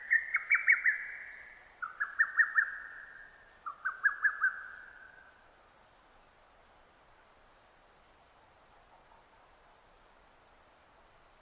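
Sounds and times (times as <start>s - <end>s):
lesser cuckoo whistled song: 0.0s - 5.2s.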